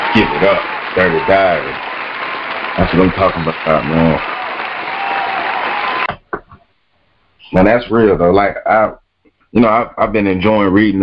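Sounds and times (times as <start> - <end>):
audience hand claps: 0.0 - 6.2
speech: 0.2 - 1.9, 2.8 - 4.4, 7.5 - 11.0.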